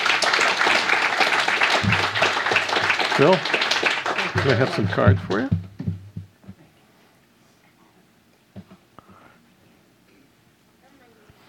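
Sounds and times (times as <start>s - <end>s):
audience applause: 0.0s - 5.6s
speech: 3.2s - 3.6s, 4.4s - 5.6s.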